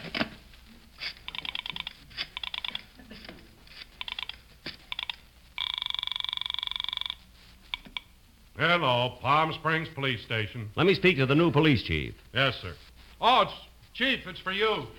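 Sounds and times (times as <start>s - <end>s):
telephone being dialed: 1.3s - 2.9s, 4.0s - 8.0s
speech: 8.6s - 14.9s.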